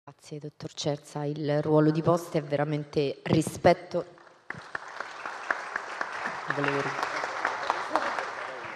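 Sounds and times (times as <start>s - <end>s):
speech: 0.2s - 4.8s, 6.6s - 7.1s
audience applause: 4.5s - 8.7s.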